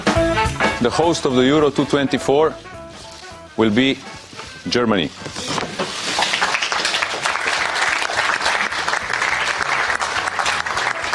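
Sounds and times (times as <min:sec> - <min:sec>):
speech: 0:00.8 - 0:02.8, 0:03.6 - 0:05.5
crowd applause at Euro 2024 host announcement: 0:06.1 - 0:11.1.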